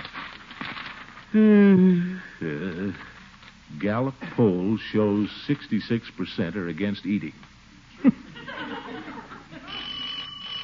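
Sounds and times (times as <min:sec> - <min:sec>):
speech: 0:01.3 - 0:07.5
laughter: 0:08.0 - 0:10.0
doorbell ringing: 0:09.7 - 0:10.6.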